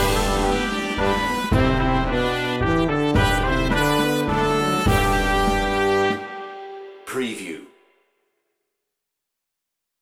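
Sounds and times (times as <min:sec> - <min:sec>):
brass band playing a Christmas carol: 0:00.0 - 0:07.6.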